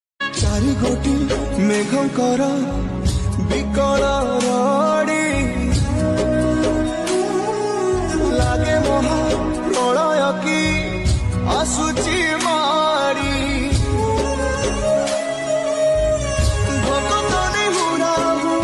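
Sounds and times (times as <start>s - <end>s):
Odia bhajan devotional song: 0.2s - 18.6s.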